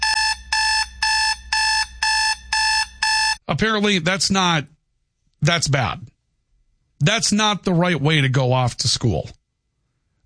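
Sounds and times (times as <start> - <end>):
alarm clock beeping: 0.0 - 3.4
speech: 3.5 - 4.8, 5.4 - 6.1, 7.0 - 9.4.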